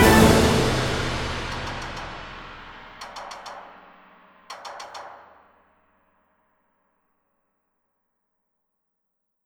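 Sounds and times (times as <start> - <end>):
commercial: 0.0 - 5.5.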